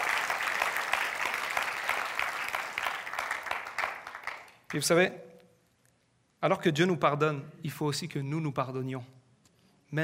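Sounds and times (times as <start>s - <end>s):
audience applauding: 0.0s - 4.9s
speech: 4.7s - 5.3s, 6.4s - 9.2s.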